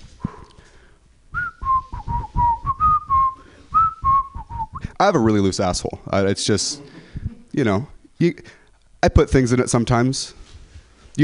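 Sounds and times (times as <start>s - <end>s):
person whistling imitating a fart: 1.3s - 5.0s
speech: 5.0s - 6.9s, 7.6s - 10.4s.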